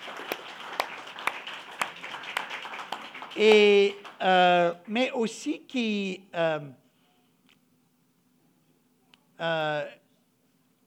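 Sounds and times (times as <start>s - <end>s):
audience applause: 0.0s - 4.9s
speech: 3.4s - 6.8s, 9.4s - 10.0s.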